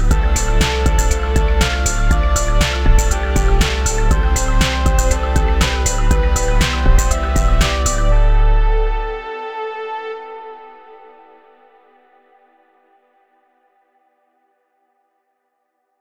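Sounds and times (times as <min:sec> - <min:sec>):
lofi music: 0:00.0 - 0:11.1.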